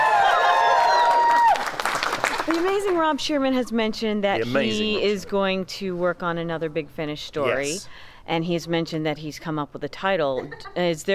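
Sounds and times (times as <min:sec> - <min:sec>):
audience cheering: 0:00.0 - 0:02.5
audience applause: 0:00.0 - 0:03.0
speech: 0:02.6 - 0:11.1.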